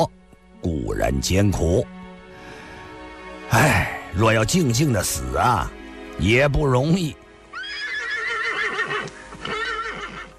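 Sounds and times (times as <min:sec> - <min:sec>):
speech: 0:00.0 - 0:02.0, 0:03.5 - 0:07.2
horse pulling a carriage through snow neighing: 0:07.5 - 0:10.3.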